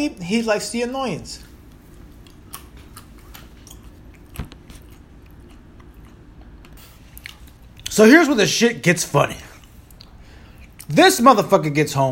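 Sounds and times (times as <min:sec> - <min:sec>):
speech: 0:00.0 - 0:01.5, 0:08.0 - 0:09.5, 0:10.9 - 0:12.1
someone chewing almonds: 0:01.4 - 0:08.0, 0:09.4 - 0:11.0.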